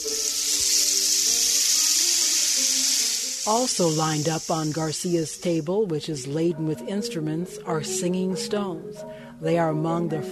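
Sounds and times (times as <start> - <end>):
rain stick being tilted: 0.0 - 4.8
speech: 3.4 - 10.3.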